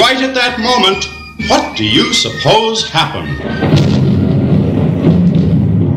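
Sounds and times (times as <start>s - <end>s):
speech: 0.3s - 4.1s
loud thunder crash: 3.4s - 5.9s.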